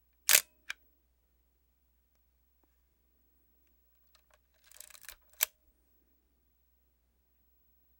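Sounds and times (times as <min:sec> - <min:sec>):
Minolta XE 7 35mm SLR camera film advance: 0:00.3 - 0:00.5
Minolta XE 7 35mm SLR camera shutter click: 0:00.3 - 0:00.8.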